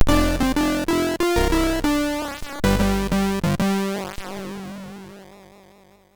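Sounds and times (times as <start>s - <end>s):
MOS6581R3 sound chip music: 0.1s - 3.5s.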